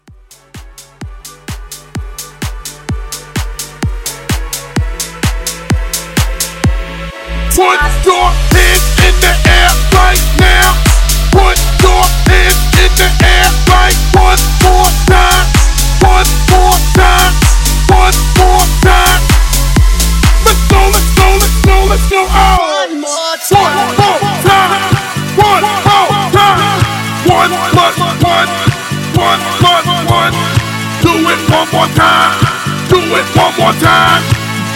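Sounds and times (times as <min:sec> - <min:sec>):
hype music: 0:00.0 - 0:34.7.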